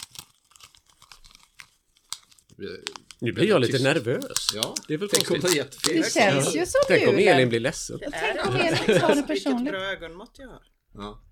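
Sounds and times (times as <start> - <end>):
flowery gift wrapping paper crinkling as it is unwrapped: 0.0 - 7.0
speech: 2.6 - 11.3
laughter: 5.9 - 10.2.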